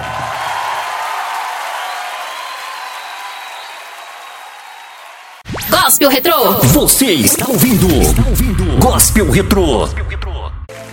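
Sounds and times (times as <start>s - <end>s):
audience applauding: 0.0s - 5.4s
speech: 5.9s - 10.2s.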